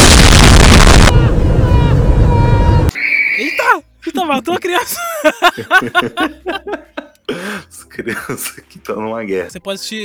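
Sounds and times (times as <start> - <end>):
bomb explosion from an anime film: 0.0 - 2.9
laughter: 4.1 - 8.7
speech: 4.3 - 10.0.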